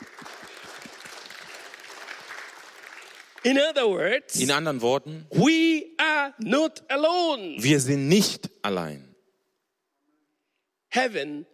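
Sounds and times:
audience applauding: 0.0 - 3.6
speech: 3.4 - 9.1, 10.9 - 11.5.

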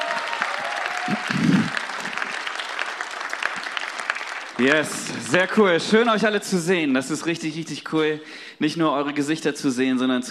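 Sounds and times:
audience applause for technical crew: 0.0 - 6.4
speech: 1.1 - 1.4, 4.6 - 10.2.

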